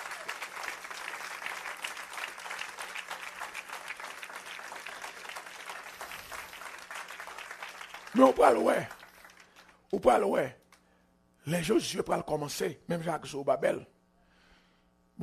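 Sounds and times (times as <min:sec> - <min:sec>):
audience applause: 0:00.0 - 0:09.8
speech: 0:08.2 - 0:09.0, 0:09.9 - 0:10.6, 0:11.4 - 0:13.9.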